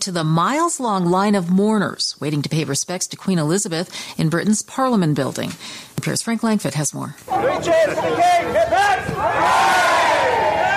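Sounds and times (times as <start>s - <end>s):
speech: 0.0s - 9.8s
crowd cheering: 7.3s - 10.7s.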